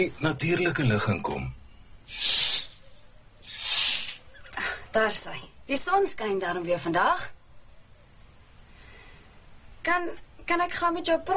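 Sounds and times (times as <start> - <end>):
speech: 0.0 - 2.4, 5.0 - 7.4, 9.8 - 11.3
curtains being drawn open: 2.1 - 2.8, 3.5 - 4.2.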